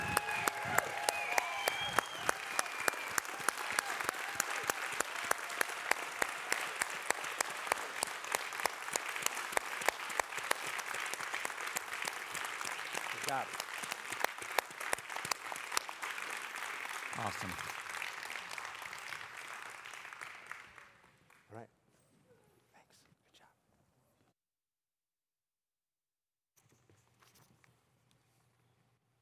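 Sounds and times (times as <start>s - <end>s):
crowd clapping: 0.0s - 21.6s
speech: 13.4s - 13.6s.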